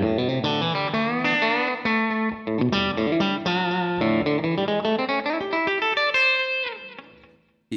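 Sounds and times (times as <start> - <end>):
electric guitar playing a song intro: 0.0 - 7.5.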